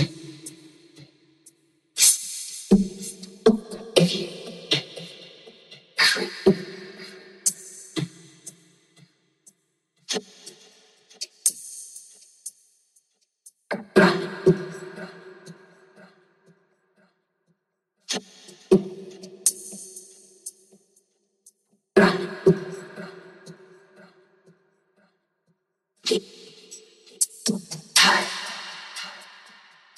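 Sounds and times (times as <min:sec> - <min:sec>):
electronic a cappella vocals: 0:00.0 - 0:01.0, 0:02.0 - 0:08.6, 0:13.7 - 0:16.6, 0:18.1 - 0:20.0, 0:22.0 - 0:24.3, 0:26.0 - 0:26.6, 0:27.2 - 0:29.9.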